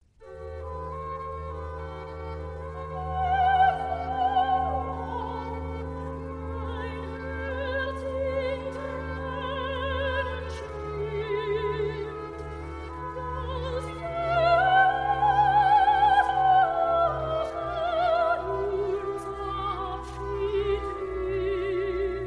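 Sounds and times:
soprano singing recitative: 3.0 - 5.8, 6.6 - 12.5, 13.1 - 22.2.

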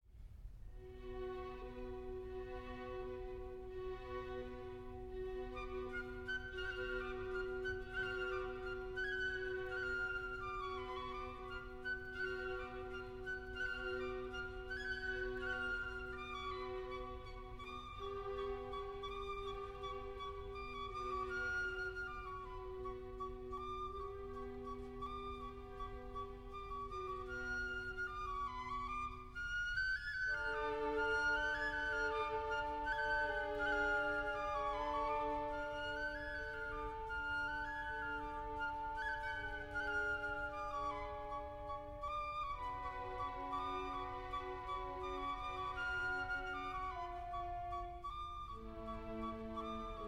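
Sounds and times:
orchestral folk dance music: 0.8 - 50.0.

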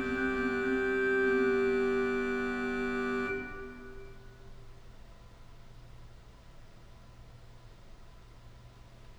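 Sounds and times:
organ chorale prelude: 0.0 - 4.7.

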